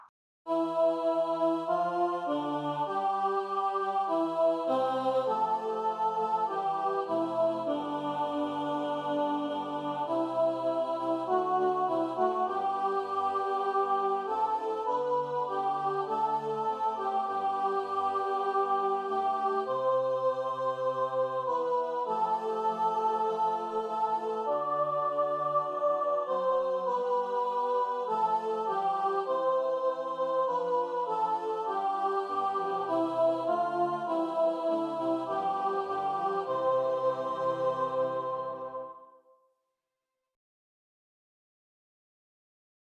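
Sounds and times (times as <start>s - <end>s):
soprano singing: 0.6s - 39.0s.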